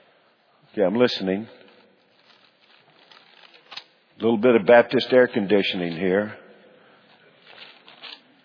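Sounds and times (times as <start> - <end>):
speech: 0.8 - 1.6, 4.2 - 6.4
pages rustling: 1.6 - 4.0, 7.1 - 8.4.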